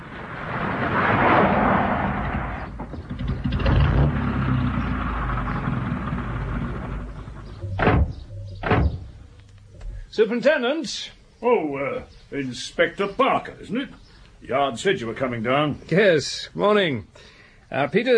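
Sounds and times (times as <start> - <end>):
car engine rumbling on a drive to Epping Forest: 0.6 - 10.0
heavy thuds: 2.6 - 10.0
speech: 10.2 - 18.1.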